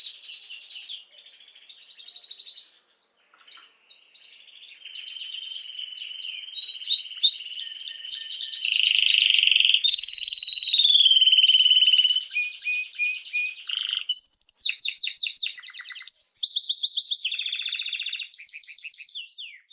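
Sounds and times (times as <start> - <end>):
canary singing: 0.0 - 19.7.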